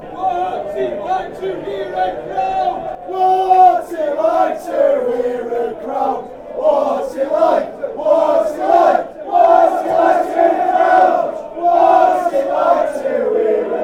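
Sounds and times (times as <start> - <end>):
crowd: 0.0 - 13.8
fans chanting: 0.0 - 13.8.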